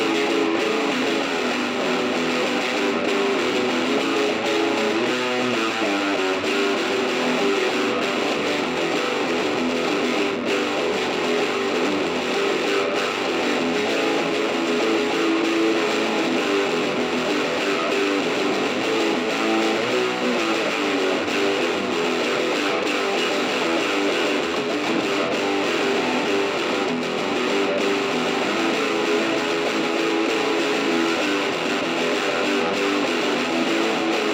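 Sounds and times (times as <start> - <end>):
main guitar: 0.0 - 34.3.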